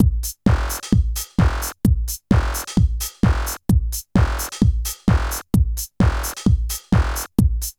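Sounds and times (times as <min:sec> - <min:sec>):
funky techno music: 0:00.0 - 0:01.7, 0:02.3 - 0:03.6, 0:04.2 - 0:05.4, 0:06.0 - 0:07.3.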